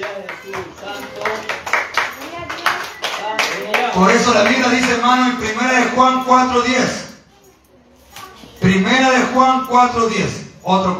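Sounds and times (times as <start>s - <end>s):
audience clapping hands: 0.0s - 5.0s
speech: 4.0s - 7.0s, 8.6s - 10.9s.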